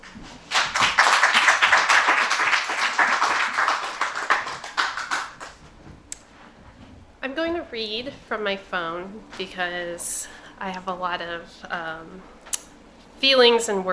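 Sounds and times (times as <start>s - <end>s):
audience clapping: 0.0s - 5.7s
speech: 7.8s - 12.4s, 13.2s - 13.9s.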